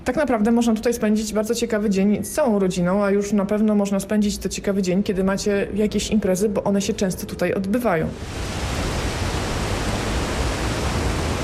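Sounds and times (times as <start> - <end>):
speech: 0.0 - 8.8
wind blowing: 8.1 - 11.4.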